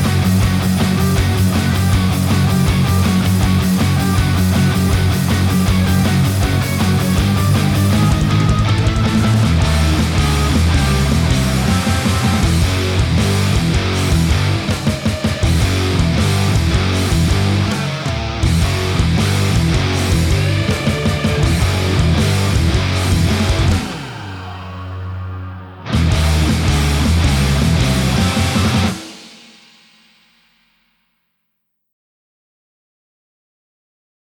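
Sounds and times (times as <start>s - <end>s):
string groove music: 0.0s - 24.1s, 25.8s - 29.0s.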